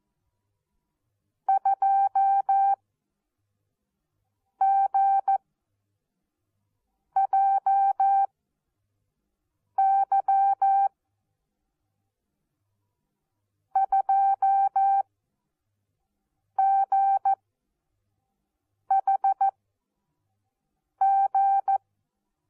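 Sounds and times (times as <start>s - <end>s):
morse code beeps: 1.5s - 2.8s, 7.2s - 8.3s, 9.8s - 10.9s, 13.8s - 15.0s, 16.6s - 17.4s, 18.9s - 19.5s, 21.0s - 21.8s.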